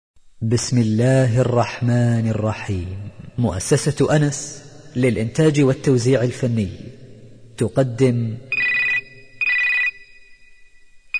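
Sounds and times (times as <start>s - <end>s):
speech: 0.4s - 7.0s, 7.6s - 8.5s
telephone ringing: 8.5s - 11.1s.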